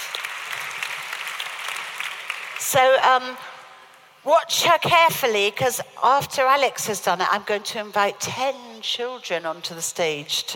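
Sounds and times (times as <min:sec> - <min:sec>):
audience applause at a children's stage show: 0:00.0 - 0:02.7
speech: 0:02.7 - 0:03.5, 0:04.2 - 0:10.5.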